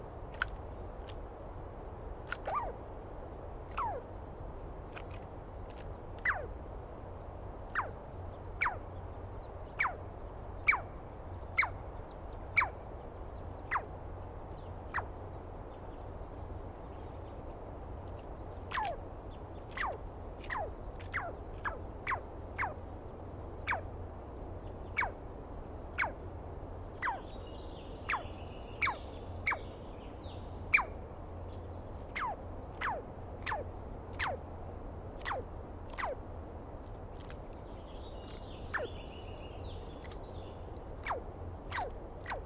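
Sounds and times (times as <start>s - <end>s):
faint bird singing: 0.0s - 42.4s
Douglas squirrel calls: 2.3s - 2.8s, 3.7s - 4.1s, 5.0s - 6.6s, 7.6s - 9.0s, 9.6s - 11.8s, 12.5s - 12.9s, 13.6s - 14.0s, 14.9s - 15.1s, 18.7s - 19.0s, 19.6s - 22.8s, 23.6s - 24.0s, 24.8s - 25.2s, 25.9s - 26.2s, 27.0s - 27.4s, 28.0s - 29.7s, 30.7s - 31.1s, 32.1s - 34.5s, 35.2s - 36.2s, 38.2s - 39.0s, 40.9s - 42.4s.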